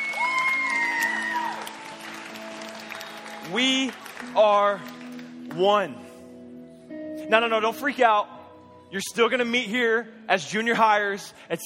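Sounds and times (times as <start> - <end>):
audience clapping: 0.0 - 5.7
speech: 3.5 - 5.0, 5.6 - 6.1, 7.3 - 8.3, 8.9 - 11.6.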